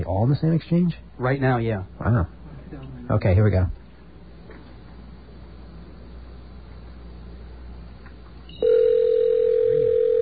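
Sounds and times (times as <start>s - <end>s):
speech: 0.0s - 2.4s, 3.1s - 3.8s
phone ringing: 8.5s - 10.1s.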